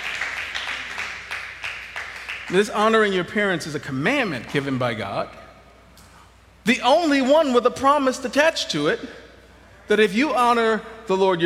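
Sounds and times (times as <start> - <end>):
audience clapping: 0.0 - 3.1
speech: 2.5 - 5.4, 6.6 - 9.2, 9.9 - 11.4.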